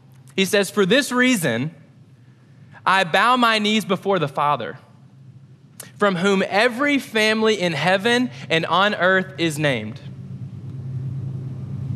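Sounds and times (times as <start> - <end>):
speech: 0.4 - 1.8, 2.8 - 4.8, 6.0 - 10.1
passing train rumble: 9.7 - 11.9.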